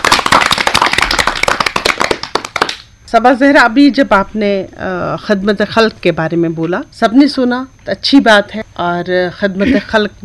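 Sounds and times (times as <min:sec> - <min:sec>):
audience clapping: 0:00.0 - 0:02.9
speech: 0:03.1 - 0:10.2.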